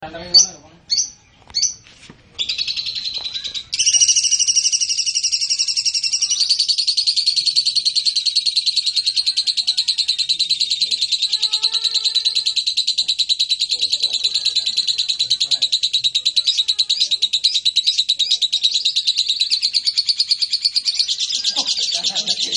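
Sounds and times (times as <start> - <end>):
blue lovebird chirping: 0.1 - 22.5
laughter: 21.2 - 22.5.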